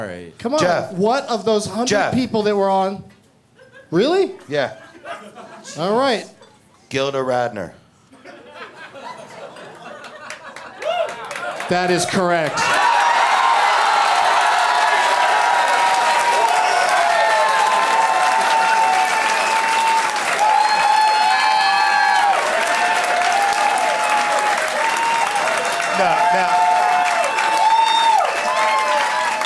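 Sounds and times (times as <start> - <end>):
speech: 0.0 - 3.2, 3.9 - 7.8, 11.7 - 12.9
laughter: 3.6 - 6.6, 8.2 - 12.8
audience applause: 9.9 - 29.4.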